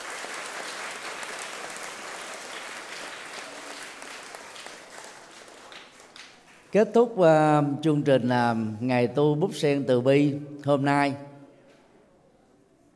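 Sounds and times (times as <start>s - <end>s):
big round of crowd applause: 0.0s - 6.7s
speech: 6.7s - 11.3s.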